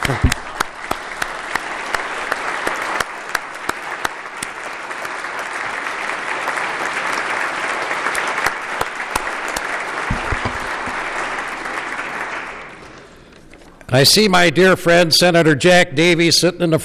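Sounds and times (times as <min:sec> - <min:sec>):
individual sharp claps: 0:00.0 - 0:13.1
audience round of applause: 0:00.0 - 0:13.3
speech: 0:00.1 - 0:00.4, 0:13.9 - 0:16.8.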